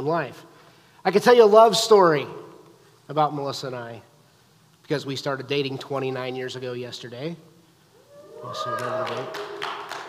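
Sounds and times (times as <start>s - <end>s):
speech: 0.0s - 2.4s, 3.1s - 4.1s, 4.9s - 7.5s, 8.4s - 9.7s
audience applause: 8.3s - 10.0s.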